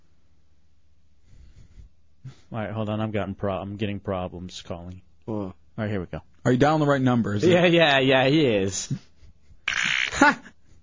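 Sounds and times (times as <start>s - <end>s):
speech: 2.5s - 9.1s, 10.2s - 10.5s
fart sound effect over a phone line: 9.7s - 10.4s.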